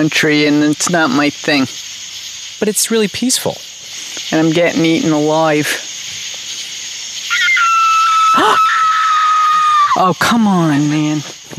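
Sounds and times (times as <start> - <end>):
speech: 0.0 - 1.9, 2.6 - 5.9, 10.0 - 11.5
high-pitched hiss of insects: 0.0 - 11.5
fox screaming at night: 7.3 - 10.2.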